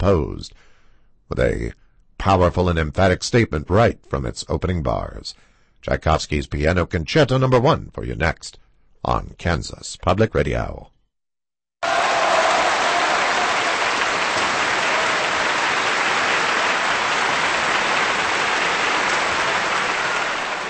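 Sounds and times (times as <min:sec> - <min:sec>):
speech: 0:00.0 - 0:00.7, 0:01.3 - 0:10.9
concert audience applause after piano concerto: 0:11.8 - 0:20.6.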